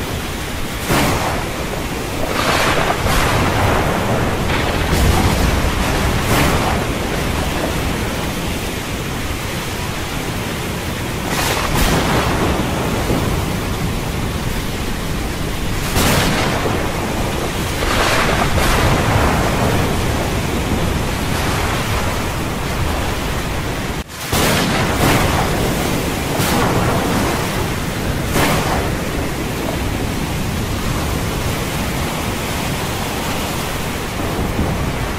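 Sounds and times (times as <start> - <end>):
rain: 0.0 - 35.1
sea waves: 0.0 - 35.1.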